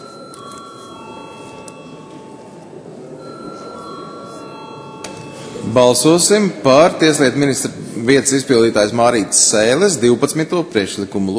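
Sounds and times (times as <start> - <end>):
bell rung to call a vote in the Latvian parliament: 0.0 - 6.9
murmur: 0.0 - 11.3
speech: 5.8 - 11.3.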